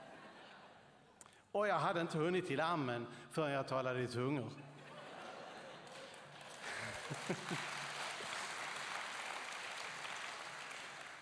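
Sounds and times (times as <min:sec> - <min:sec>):
speech: 0:01.5 - 0:04.8, 0:07.1 - 0:07.7
laughter: 0:04.6 - 0:08.3
audience applause: 0:05.8 - 0:11.2.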